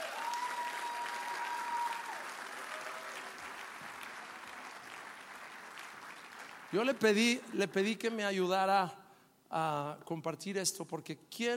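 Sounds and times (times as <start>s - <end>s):
audience applauding: 0.0s - 7.2s
speech: 6.7s - 11.5s.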